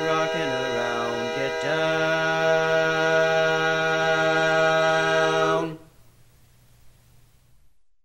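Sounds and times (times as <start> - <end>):
bass voice singing Christmas learning track: 0.0 - 5.9.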